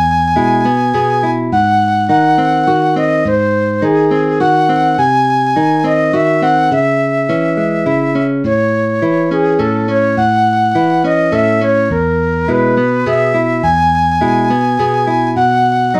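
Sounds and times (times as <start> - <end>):
flute and guitar duet in E major: 0.0 - 15.9.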